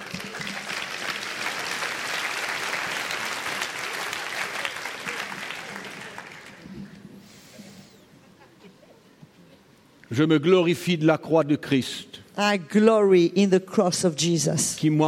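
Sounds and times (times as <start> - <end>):
audience clapping: 0.0 - 7.1
speech: 10.1 - 15.0.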